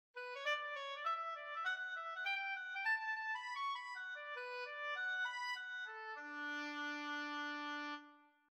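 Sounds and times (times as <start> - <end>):
oboe: 0.2 - 8.4.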